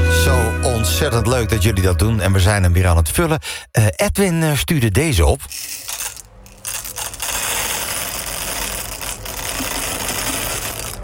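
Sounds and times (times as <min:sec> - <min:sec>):
speech: 0:01.0 - 0:05.9
coffee beans poured into coffee grinder: 0:05.5 - 0:11.0.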